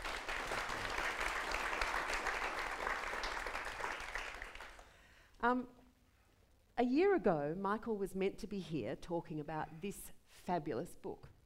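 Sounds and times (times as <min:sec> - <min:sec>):
audience applause at an author talk: 0:00.0 - 0:04.9
speech: 0:05.4 - 0:05.8, 0:06.8 - 0:11.4.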